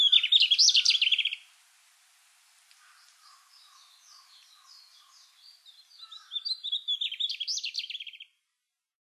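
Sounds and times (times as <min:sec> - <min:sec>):
mugimaki flycatcher calling in Hyogo: 0:00.0 - 0:01.5, 0:02.8 - 0:08.3.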